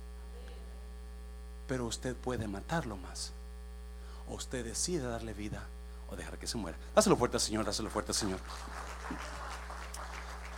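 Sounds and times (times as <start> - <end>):
speech: 1.7 - 3.4, 4.3 - 9.6
audience applause: 7.9 - 10.5.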